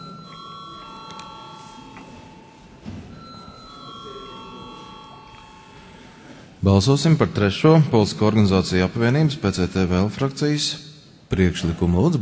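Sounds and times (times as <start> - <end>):
parliament voting call bell: 0.0 - 6.4
speech: 6.6 - 12.1.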